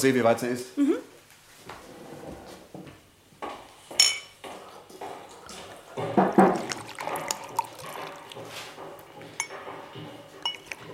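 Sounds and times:
glasses clinking: 0:04.0 - 0:04.4, 0:06.0 - 0:10.9
whisky poured into glasses: 0:05.7 - 0:09.6.

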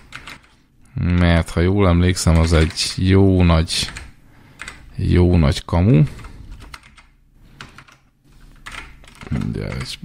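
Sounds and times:
typing on a PC computer keyboard: 0:00.0 - 0:00.6, 0:02.3 - 0:02.9, 0:03.8 - 0:04.8, 0:06.1 - 0:10.0
low hum: 0:00.0 - 0:10.0
speech: 0:01.0 - 0:04.0, 0:05.0 - 0:06.2, 0:09.6 - 0:10.0.

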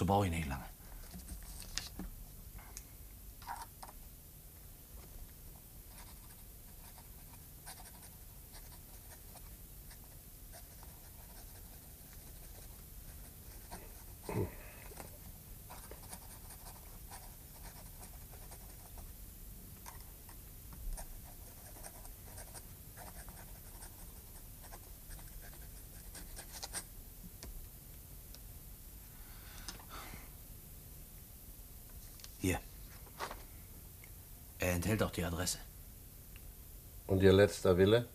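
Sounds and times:
speech: 0:00.1 - 0:00.7, 0:32.4 - 0:32.7, 0:34.8 - 0:35.7, 0:37.1 - 0:38.1
pen scratching on paper writing a letter in a cell: 0:05.9 - 0:14.3, 0:15.7 - 0:19.0, 0:21.0 - 0:26.8.

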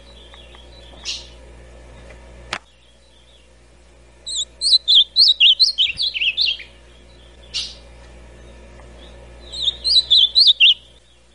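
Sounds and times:
ultramarine grosbeak song: 0:00.0 - 0:01.4, 0:04.2 - 0:11.3.

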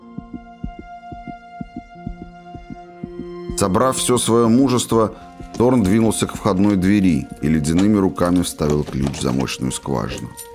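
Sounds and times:
pounding heartbeat: 0:00.0 - 0:03.8
speech: 0:03.6 - 0:10.5.

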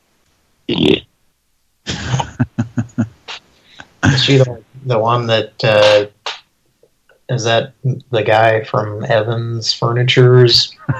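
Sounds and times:
woman burping: 0:01.9 - 0:03.1
laughter: 0:01.9 - 0:06.0, 0:10.6 - 0:10.9
speech: 0:04.2 - 0:06.2, 0:07.3 - 0:10.9.

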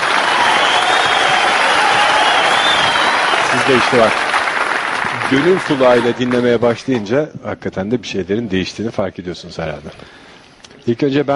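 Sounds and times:
audience applause: 0:00.0 - 0:06.6
speech: 0:03.7 - 0:04.3, 0:05.3 - 0:10.2, 0:10.8 - 0:11.3.

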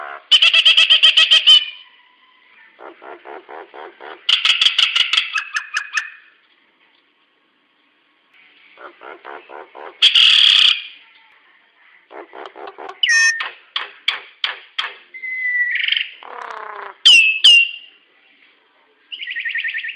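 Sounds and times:
hill myna vocalizations: 0:00.0 - 0:06.3, 0:08.6 - 0:11.1, 0:11.9 - 0:13.6, 0:15.8 - 0:17.4.

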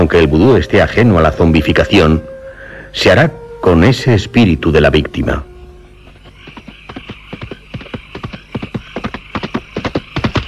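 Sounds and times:
speech: 0:00.1 - 0:02.3, 0:02.9 - 0:05.5
hooves of a horse ridden by a Bokor clip-clopping: 0:06.0 - 0:10.4.

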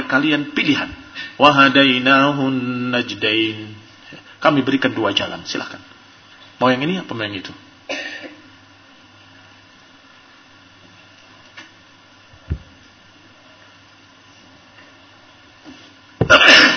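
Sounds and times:
low hum: 0:00.0 - 0:16.7
speech: 0:00.1 - 0:03.8, 0:04.4 - 0:05.9, 0:06.6 - 0:08.3
soft knocks: 0:12.4 - 0:12.8
loud breathy sneeze: 0:16.3 - 0:16.7.

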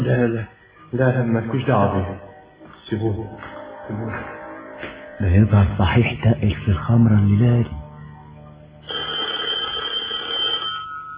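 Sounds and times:
speech: 0:00.1 - 0:02.3, 0:02.9 - 0:07.8
telephone bell ringing in a radio drama: 0:08.8 - 0:11.1.

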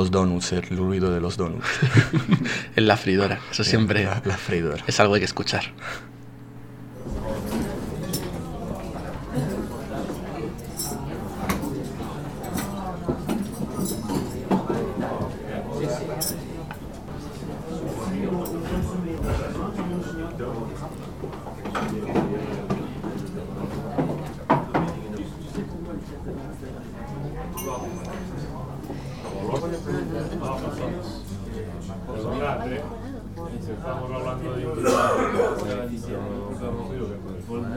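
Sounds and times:
speech: 0:00.0 - 0:06.1
murmur of indistinct voices in a dining room: 0:00.0 - 0:37.7
laughter: 0:01.5 - 0:04.9, 0:05.8 - 0:06.1
dishes and cutlery clinking: 0:07.0 - 0:19.8, 0:27.5 - 0:30.1.

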